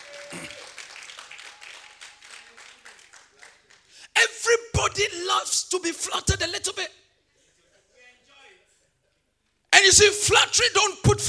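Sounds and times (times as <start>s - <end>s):
audience clapping: 0.0s - 4.1s
speech: 5.0s - 7.0s, 9.9s - 11.2s.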